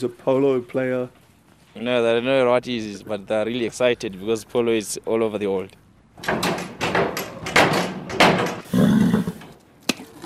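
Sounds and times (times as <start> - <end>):
speech: 0.0 - 1.2, 1.8 - 6.5
horse kicking a wooden stable door: 6.2 - 8.7.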